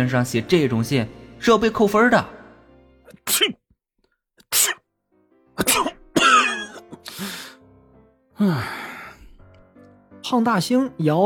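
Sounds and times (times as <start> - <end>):
speech: 0.0 - 2.4, 3.3 - 3.6, 8.4 - 8.8, 10.2 - 11.2
person imitating sneezes: 3.1 - 3.6, 4.4 - 4.8, 5.6 - 7.3.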